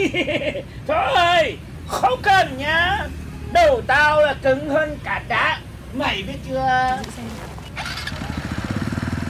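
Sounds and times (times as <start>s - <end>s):
laughter: 0.0s - 0.8s
speech: 0.0s - 7.4s
motorbike engine puttering: 6.9s - 9.2s.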